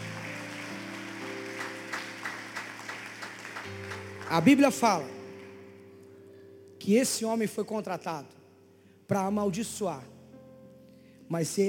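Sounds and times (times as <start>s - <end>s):
audience applauding: 0.0s - 5.7s
speech: 4.3s - 5.2s, 6.8s - 8.4s, 9.1s - 10.1s, 11.3s - 11.6s.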